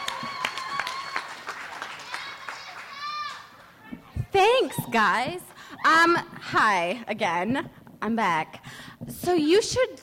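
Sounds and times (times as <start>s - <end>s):
whoops and cheers: 0.0s - 3.5s
audience clapping: 0.0s - 4.1s
speech: 4.4s - 10.0s.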